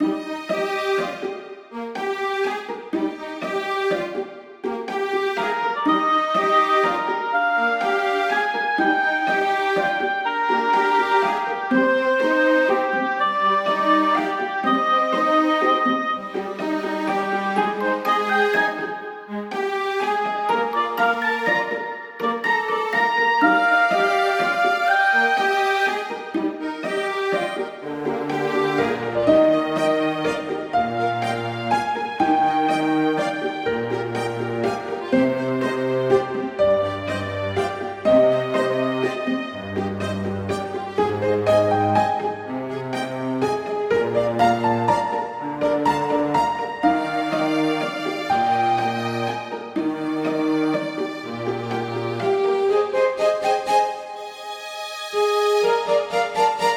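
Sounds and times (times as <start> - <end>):
dungeon kingdom village music: 0.0 - 56.7.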